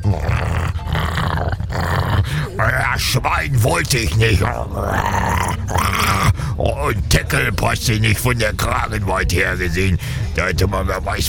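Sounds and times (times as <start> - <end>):
German shepherd dog growling: 0.0 - 3.0, 4.1 - 6.5
speech: 0.1 - 0.4, 2.6 - 11.2.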